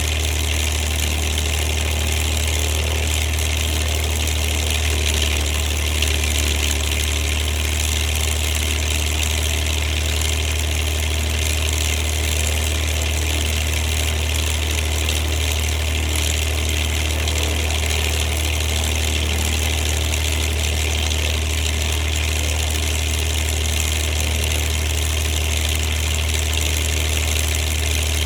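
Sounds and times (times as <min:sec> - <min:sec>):
P-40 Kittyhawk aircraft idling: 0:00.0 - 0:28.2.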